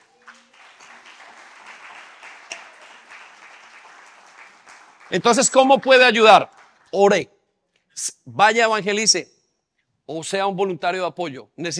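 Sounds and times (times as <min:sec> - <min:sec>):
audience applause in church: 0:00.0 - 0:07.0
speech: 0:05.1 - 0:07.3, 0:08.0 - 0:09.4, 0:10.1 - 0:11.7.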